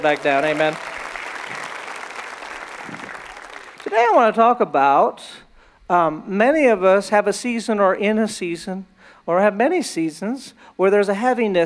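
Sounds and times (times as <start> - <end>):
speech: 0.0 - 0.9, 3.9 - 5.3, 5.9 - 11.6
audience applauding: 0.0 - 4.2.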